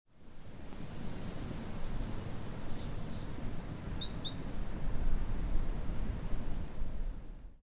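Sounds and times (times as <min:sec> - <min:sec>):
low rumbling background noise: 0:00.1 - 0:07.6
great tit calls: 0:01.8 - 0:04.5, 0:05.3 - 0:05.8.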